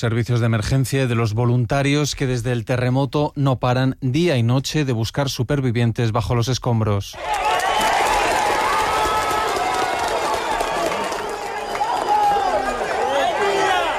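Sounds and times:
speech: 0.0s - 7.6s
many overlapping voices shouting: 7.2s - 13.9s
rescuers applauding: 7.2s - 13.9s.

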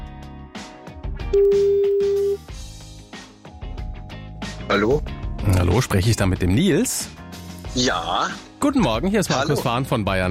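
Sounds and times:
busy rhythmic music: 0.6s - 10.3s
speech: 1.3s - 1.6s, 4.7s - 10.3s
telephone ring tone: 1.4s - 2.4s.

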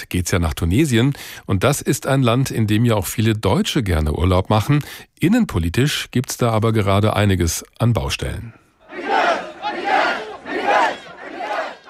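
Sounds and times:
speech: 0.0s - 9.4s
protest crowd chanting: 8.8s - 11.8s.

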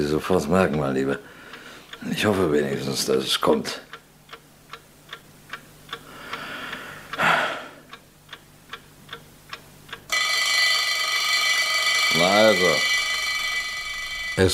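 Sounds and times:
speech: 0.0s - 1.4s, 2.0s - 3.9s, 14.4s - 14.5s
alarm clock ringing on bedside table: 10.1s - 14.5s.

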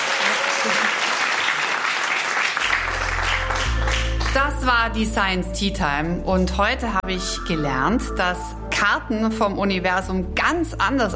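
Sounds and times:
audience applause: 0.0s - 4.4s
speech: 4.4s - 11.1s.

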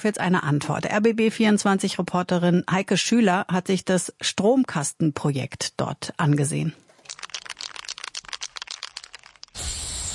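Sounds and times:
speech: 0.0s - 7.3s
spray can rattling: 6.9s - 10.1s
spray can hissing while spraying: 9.5s - 10.1s.

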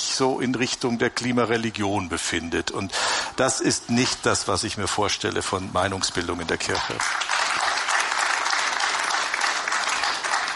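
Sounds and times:
speech: 0.2s - 7.3s
audience applause: 7.0s - 10.5s.

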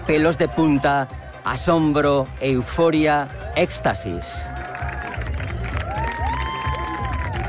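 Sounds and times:
large crowd cheering and shouting: 0.0s - 7.4s
speech: 0.1s - 4.6s
large crowd applauding: 3.8s - 7.4s.

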